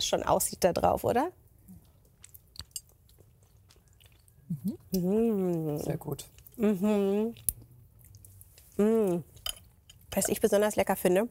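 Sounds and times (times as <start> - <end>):
speech: 0.0 - 1.4, 4.6 - 7.5, 8.8 - 9.3, 10.1 - 11.2
quiet chewing of a Spätzle dish with a creamy sauce: 1.5 - 10.2.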